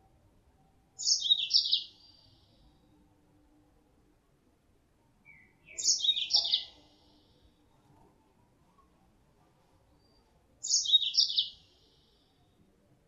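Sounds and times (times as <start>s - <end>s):
female Mozambique canary calling as lure sound: 1.0s - 2.7s, 5.3s - 7.2s, 10.0s - 12.4s.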